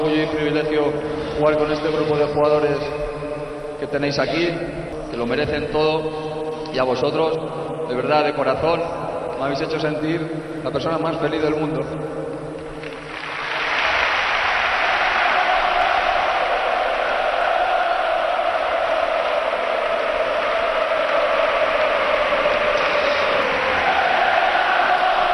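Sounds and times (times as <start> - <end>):
speech: 0.0 - 3.2, 3.8 - 12.3
huge stadium crowd roaring and chanting in unison: 13.3 - 25.3.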